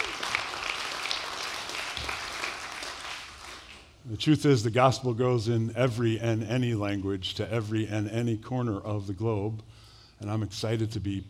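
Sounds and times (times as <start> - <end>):
audience clapping: 0.0 - 4.0
speech: 4.1 - 11.2.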